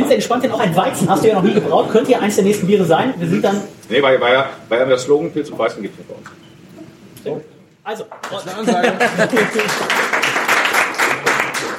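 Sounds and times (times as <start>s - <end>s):
speech: 0.1s - 6.4s, 7.2s - 10.2s
laughter: 1.0s - 2.2s, 8.4s - 10.1s
hobby brewers clapping loudly: 8.1s - 11.7s.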